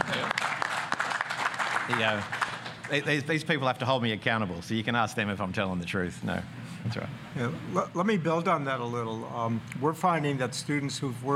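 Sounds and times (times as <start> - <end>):
applause: 0.0 - 3.2
speech: 1.9 - 11.3.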